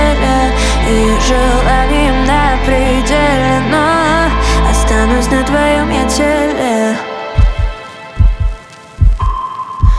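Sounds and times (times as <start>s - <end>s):
sustained tonal hum: 0.0s - 7.4s
speech: 0.9s - 1.8s
deep thudding heartbeat: 7.4s - 9.9s.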